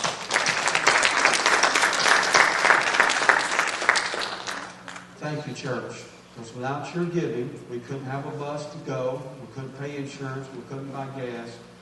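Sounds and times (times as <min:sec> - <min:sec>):
church audience standing and applauding: 0:00.0 - 0:05.2
speech: 0:05.3 - 0:11.7.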